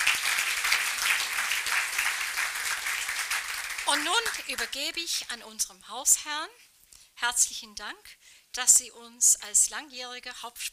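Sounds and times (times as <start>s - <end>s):
audience applause: 0.0s - 4.8s
speech: 3.9s - 10.7s.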